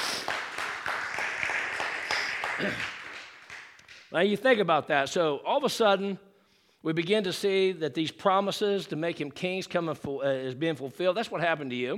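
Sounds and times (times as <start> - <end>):
audience clapping: 0.0 - 4.1
speech: 2.6 - 3.0, 4.1 - 11.9.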